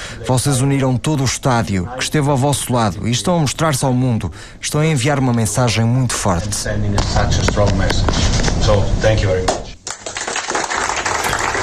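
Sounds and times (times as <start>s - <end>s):
speech: 0.1s - 9.6s
Iran players applauding the FIFA president: 9.8s - 11.6s.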